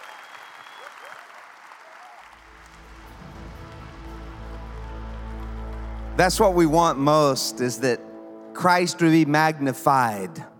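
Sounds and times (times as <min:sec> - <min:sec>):
audience applause and cheering: 0:00.0 - 0:07.5
speech: 0:06.2 - 0:10.5.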